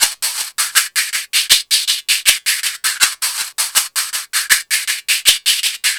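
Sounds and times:
R&B drums: 0:00.0 - 0:05.9.

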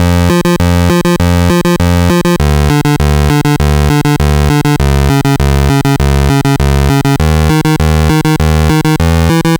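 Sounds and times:
NES chiptune bass: 0:00.0 - 0:09.5.

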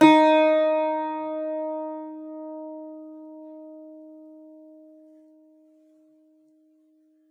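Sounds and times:
big bouzouki playing D#4 note: 0:00.0 - 0:05.5.

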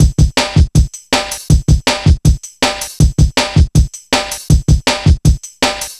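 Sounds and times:
drum loop: 0:00.0 - 0:05.9.

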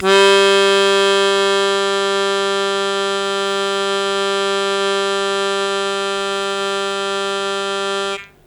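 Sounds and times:
long sustained harmonica note in G: 0:00.0 - 0:08.4.

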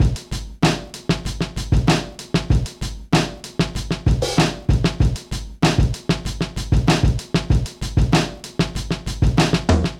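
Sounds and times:
vintage drum loop: 0:00.0 - 0:09.9.

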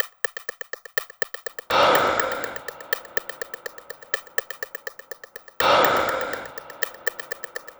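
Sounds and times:
breath pattern: 0:01.6 - 0:07.7.

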